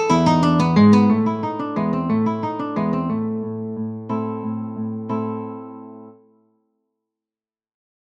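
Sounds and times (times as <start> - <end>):
larghetto alla siciliana on guitar: 0.0 - 6.4.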